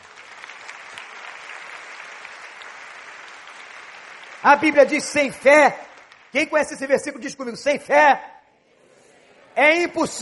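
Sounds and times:
audience applause: 0:00.0 - 0:07.0
speech: 0:04.4 - 0:08.3, 0:09.6 - 0:10.2.

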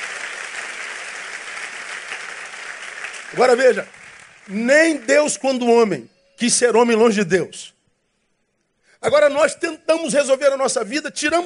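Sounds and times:
audience applauding loudly: 0:00.0 - 0:05.9
speech: 0:03.3 - 0:07.8, 0:09.0 - 0:11.4.

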